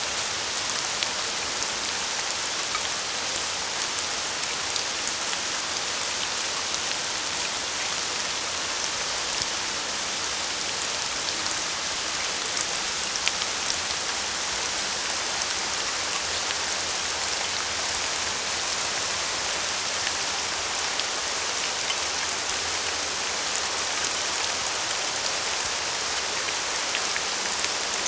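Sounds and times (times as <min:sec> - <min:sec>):
rain: 0:00.0 - 0:28.0.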